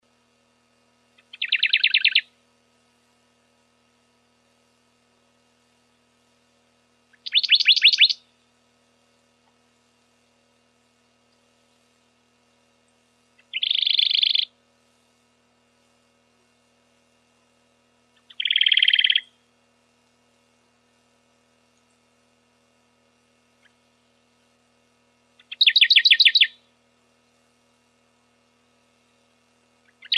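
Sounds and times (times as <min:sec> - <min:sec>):
Radde's warbler trilling: 0:01.2 - 0:02.2, 0:07.1 - 0:08.2, 0:13.4 - 0:14.5, 0:18.2 - 0:19.3, 0:25.4 - 0:26.6, 0:29.9 - 0:30.1.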